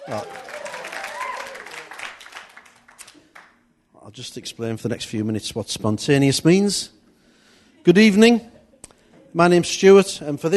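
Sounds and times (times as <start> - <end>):
audience applause: 0.0 - 3.6
speech: 0.1 - 0.4, 4.1 - 7.0, 7.8 - 8.5, 9.3 - 10.5.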